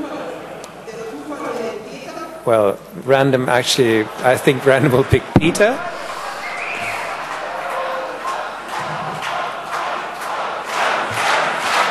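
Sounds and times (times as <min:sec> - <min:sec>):
crowd noise: 0:00.0 - 0:11.8
speech: 0:02.4 - 0:05.9
audience at a hacker-event quiz show chanting a name: 0:05.5 - 0:11.8.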